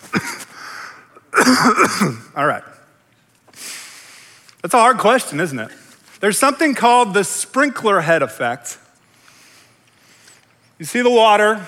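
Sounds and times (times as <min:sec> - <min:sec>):
throaty cough: 0:00.0 - 0:00.5, 0:01.2 - 0:02.4
speech: 0:01.5 - 0:02.7, 0:04.6 - 0:08.8, 0:10.8 - 0:11.6.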